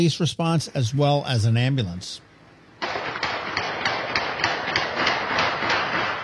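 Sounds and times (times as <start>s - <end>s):
speech: 0.0s - 2.3s
recorded gunshots: 2.8s - 6.2s.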